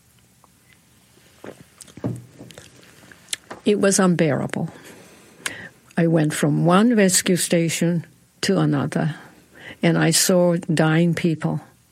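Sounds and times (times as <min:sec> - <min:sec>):
rustling and soft knocks of someone shifting in a seat: 0:01.4 - 0:03.7
speech: 0:03.7 - 0:04.9, 0:06.0 - 0:09.2, 0:09.8 - 0:11.7.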